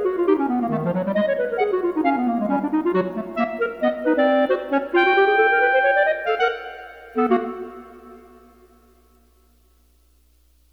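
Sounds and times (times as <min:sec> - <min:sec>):
calypso clarinet: 0:00.0 - 0:08.4.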